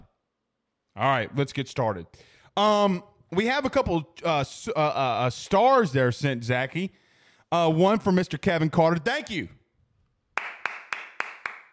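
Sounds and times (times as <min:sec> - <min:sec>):
speech: 0:01.0 - 0:09.6
hand claps: 0:10.3 - 0:11.7.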